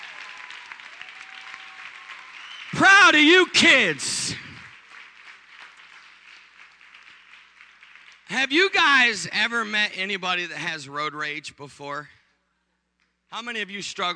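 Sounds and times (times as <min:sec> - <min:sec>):
audience hand clapping applause: 0:00.0 - 0:09.7
speech: 0:02.8 - 0:04.5, 0:08.4 - 0:12.2, 0:13.3 - 0:14.1.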